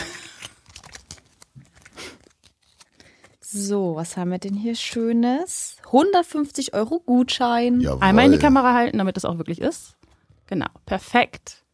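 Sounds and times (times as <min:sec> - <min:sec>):
plastic prize capsule twisted open: 0:00.4 - 0:03.4
speech: 0:03.5 - 0:11.6.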